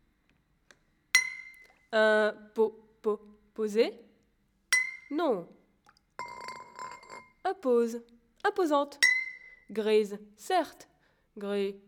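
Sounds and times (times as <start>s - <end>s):
glass bottle clinking: 1.2s - 1.7s, 4.7s - 5.1s, 6.2s - 7.4s, 9.0s - 9.7s
speech: 1.9s - 4.0s, 5.1s - 5.6s, 7.5s - 9.1s, 9.7s - 11.8s.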